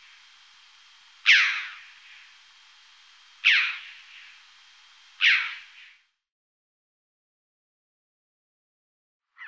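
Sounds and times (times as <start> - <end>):
red-billed chough calling with harsh chattering notes: 0.0 - 5.9.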